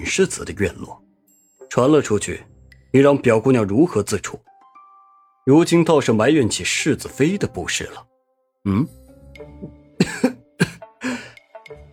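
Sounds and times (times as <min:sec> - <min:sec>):
speech: 0:00.0 - 0:01.1, 0:01.7 - 0:04.5, 0:05.5 - 0:10.3
coughing: 0:09.6 - 0:11.4.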